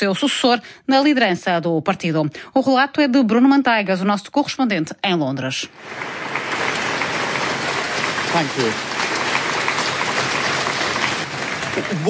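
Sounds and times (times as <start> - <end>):
speech: 0.0 - 6.7, 8.4 - 8.9, 11.8 - 12.0
applause from a crowd of staff: 5.8 - 12.0.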